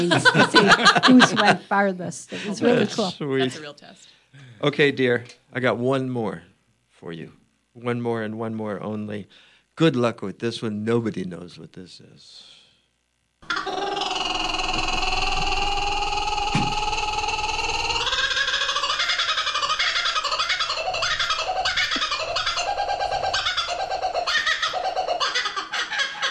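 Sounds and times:
laughter: 0.0 - 1.7
speech: 0.0 - 12.6
kookaburra call: 13.4 - 26.3.

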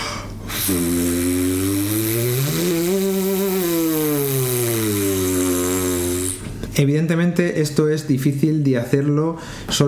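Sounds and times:
brass player's lip buzz sweeping low to high: 0.5 - 6.5
speech: 0.7 - 1.1, 6.8 - 9.8.

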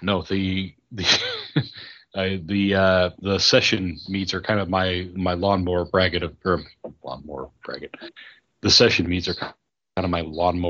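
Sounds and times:
speech: 0.0 - 10.6
laughter: 0.1 - 8.2
man coughing after mead went down the wrong pipe: 1.0 - 2.0.

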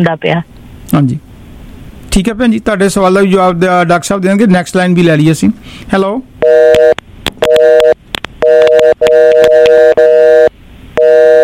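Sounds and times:
speech: 0.0 - 1.3, 2.1 - 6.7
telephone beeping tone after the call hangs up: 6.4 - 11.4.

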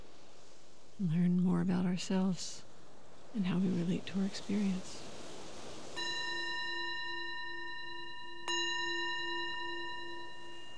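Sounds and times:
speech: 1.0 - 2.7, 3.3 - 5.1
meditation bell ringing: 5.9 - 10.7.

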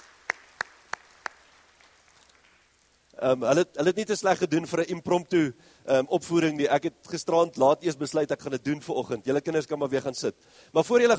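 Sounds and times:
hand claps: 0.0 - 2.7
speech: 3.2 - 11.1.

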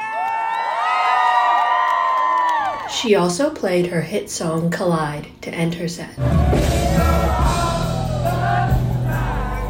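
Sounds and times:
audience cheering at concert: 0.0 - 3.0, 6.2 - 9.6
speech: 2.9 - 7.2.

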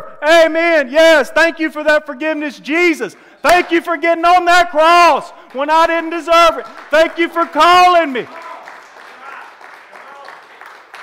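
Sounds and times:
speech: 0.2 - 8.4
church congregation applauding during a worship service: 5.2 - 11.0.

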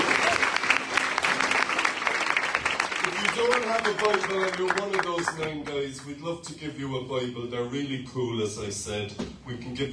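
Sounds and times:
church gathering applause: 0.0 - 5.7
speech: 3.4 - 9.9.

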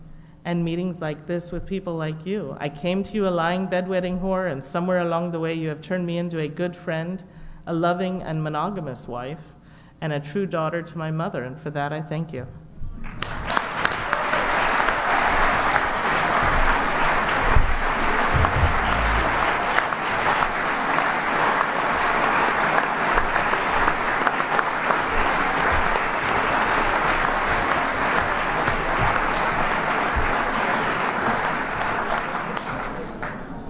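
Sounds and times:
speech: 0.4 - 13.2
audience applause: 13.0 - 33.6.

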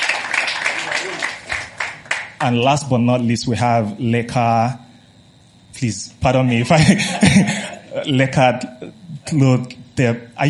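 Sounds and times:
audience applause: 0.0 - 2.4
speech: 1.0 - 1.4, 2.4 - 4.8, 5.8 - 10.4
laughter: 6.5 - 9.0.

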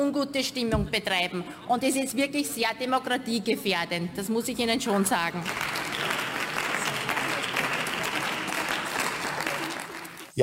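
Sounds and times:
speech: 0.1 - 5.8
audience applause: 5.4 - 10.4.

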